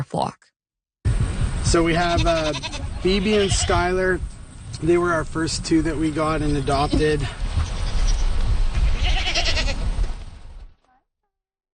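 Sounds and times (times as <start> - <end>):
speech: 0.0 - 0.5, 1.7 - 7.4
goats bleating while being fed on a farm: 1.9 - 4.0, 6.6 - 9.8
rustling and shuffling: 4.1 - 10.8.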